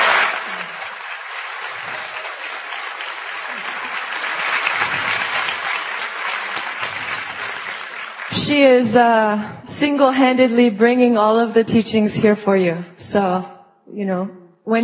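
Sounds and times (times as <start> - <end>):
audience applause: 0.0 - 8.8
speech: 8.5 - 14.8.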